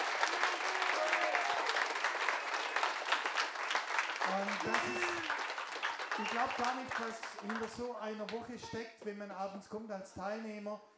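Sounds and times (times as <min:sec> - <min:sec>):
audience applause: 0:00.0 - 0:07.8
speech: 0:04.3 - 0:05.4, 0:06.2 - 0:10.9.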